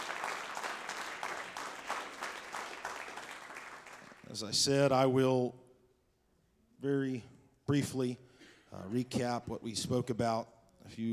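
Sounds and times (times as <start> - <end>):
audience applause: 0.0 - 4.3
speech: 4.3 - 5.6, 6.8 - 11.1.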